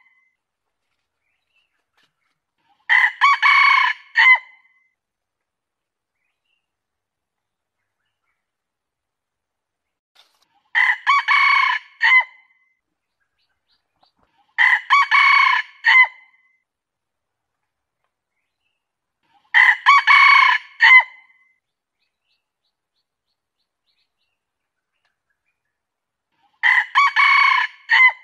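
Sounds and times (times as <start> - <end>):
junglefowl crowing: 2.9 - 4.5, 10.7 - 12.4, 14.6 - 16.2, 19.5 - 21.2, 26.6 - 28.2.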